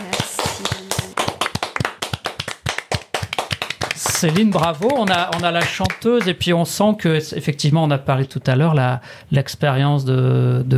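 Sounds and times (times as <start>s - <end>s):
audience applause: 0.0s - 6.3s
speech: 4.2s - 10.7s.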